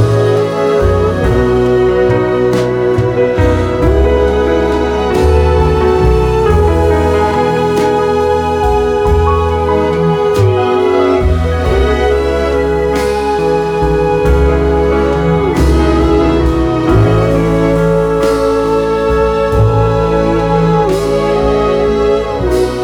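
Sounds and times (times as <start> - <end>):
wedding version of a song: 0.0 - 22.8.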